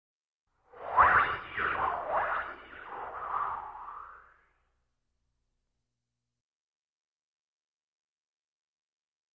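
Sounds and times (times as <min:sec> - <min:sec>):
object spinning up in the air: 0:00.7 - 0:04.6.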